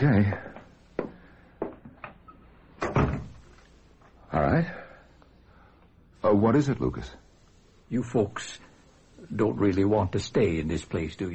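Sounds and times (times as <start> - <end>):
speech: 0.0 - 0.5, 4.4 - 4.8, 6.4 - 7.3, 7.9 - 11.3
door thumping shut: 2.8 - 3.4.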